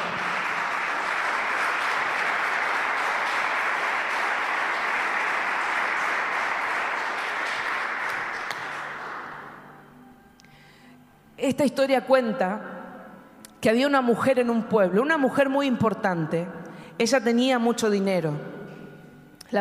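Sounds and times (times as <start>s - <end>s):
large crowd applause: 0.0s - 9.6s
speech: 11.5s - 12.8s, 13.6s - 18.5s.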